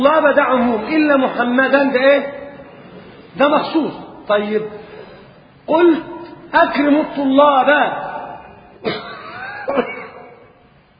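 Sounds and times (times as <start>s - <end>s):
speech: 0.0s - 2.4s, 3.4s - 4.8s, 5.7s - 8.1s, 8.8s - 9.1s, 9.7s - 9.9s
man coughing deliberately: 8.8s - 10.6s.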